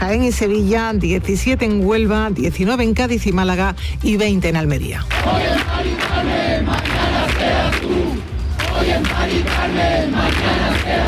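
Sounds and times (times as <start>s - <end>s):
speech: 0.0s - 8.2s
protest crowd of campers shouting in Plaza de la Encarnación de Sevilla: 5.2s - 11.0s.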